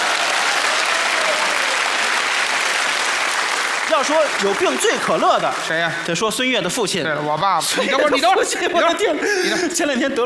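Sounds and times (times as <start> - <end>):
audience applause: 0.0 - 6.2
speech: 3.9 - 10.2
laughter: 7.6 - 10.0.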